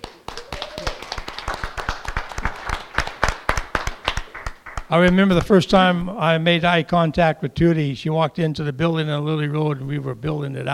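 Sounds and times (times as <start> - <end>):
church gathering audience applause: 0.0 - 5.2
speech: 4.9 - 10.7.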